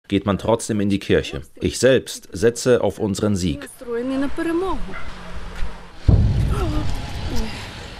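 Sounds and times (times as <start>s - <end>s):
speech: 0.1s - 5.2s
Russian drone being shot down, heavy boom with rumble: 6.0s - 7.9s.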